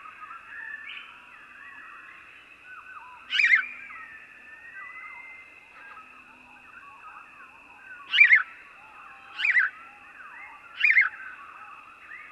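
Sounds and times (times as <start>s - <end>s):
house sparrow uttering sharp emphatic chirps: 3.3s - 3.7s, 8.1s - 8.5s, 9.4s - 9.7s, 10.8s - 11.1s.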